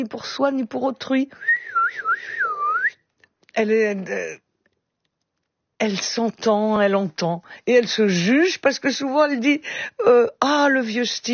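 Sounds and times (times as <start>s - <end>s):
speech: 0.0s - 2.5s, 3.6s - 4.4s, 5.8s - 11.3s
person whistling a blackbird-like phrase: 1.4s - 3.0s.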